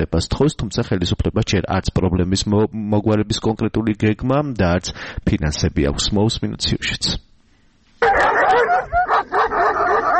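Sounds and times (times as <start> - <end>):
speech: 0.0 - 7.3
stray dogs in Lagodekhi, Georgia barking and yelping: 8.0 - 10.1.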